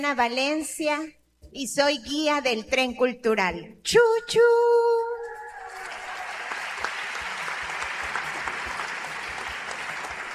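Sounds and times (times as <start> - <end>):
speech: 0.0 - 5.0
audience applause: 5.5 - 10.3.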